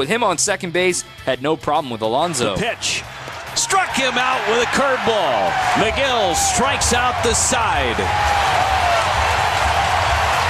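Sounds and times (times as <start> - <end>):
speech: 0.0 - 8.5
baseball stadium crowd roar during a Brewers game: 2.3 - 10.4.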